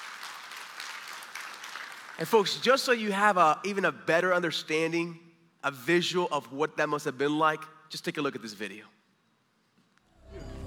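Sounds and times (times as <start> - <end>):
crowd clapping: 0.0 - 2.5
speech: 2.2 - 9.0.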